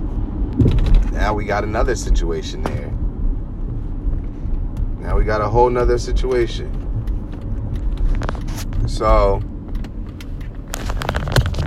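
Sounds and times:
car engine and road rumble while driving: 0.0 - 11.6
speech: 0.6 - 3.0, 5.1 - 6.8, 8.8 - 9.5
light clicks and rattles inside a car: 4.5 - 11.6.

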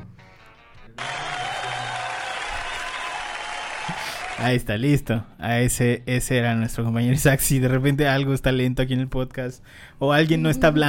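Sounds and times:
applause: 1.0 - 4.5
speech: 4.4 - 10.8.

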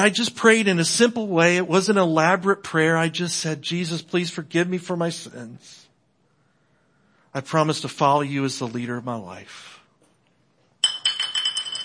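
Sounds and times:
speech: 0.0 - 5.8, 7.4 - 9.8
glass bottle knocked over: 10.8 - 11.8.

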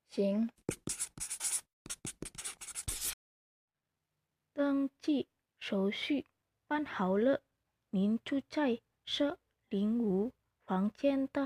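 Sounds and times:
speech: 0.2 - 0.9, 4.6 - 11.4
pen writing a signature: 0.7 - 3.2.

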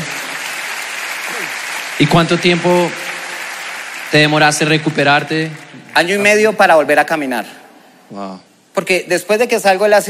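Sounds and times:
applause: 0.0 - 6.6
speech: 2.0 - 3.0, 4.1 - 10.0.

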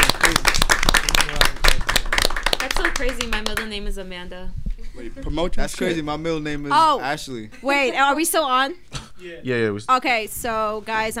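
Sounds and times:
round of applause: 0.0 - 3.7
speech: 3.0 - 11.1.

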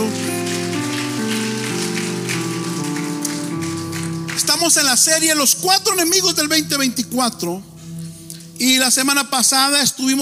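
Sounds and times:
crowd applause: 0.0 - 5.3
sustained keyboard chords: 0.0 - 10.2
speech: 4.4 - 7.8, 8.6 - 10.2.

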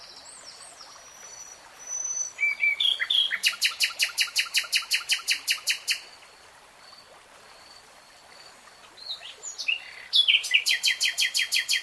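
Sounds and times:
nightingale singing: 1.9 - 6.0, 9.1 - 11.8.

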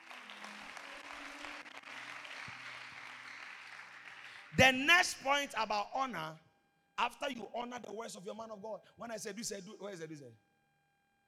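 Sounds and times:
crowd clapping: 0.0 - 5.2
speech: 4.6 - 6.4, 7.0 - 10.5.

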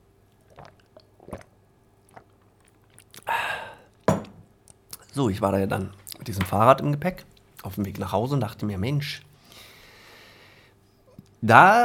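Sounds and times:
person sipping water: 0.3 - 4.1
person gulping: 0.3 - 5.1
wet mouth clicks: 0.4 - 3.4, 4.7 - 5.1
speech: 5.2 - 9.3, 11.4 - 11.8.

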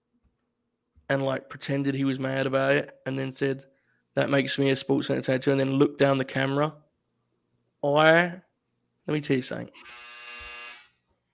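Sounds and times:
speech: 1.1 - 6.8, 7.8 - 8.4, 9.1 - 10.1
clothes dryer buzzer: 9.8 - 10.9.

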